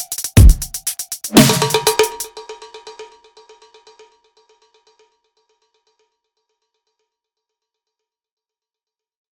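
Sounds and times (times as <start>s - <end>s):
drums: 0.0s - 2.6s.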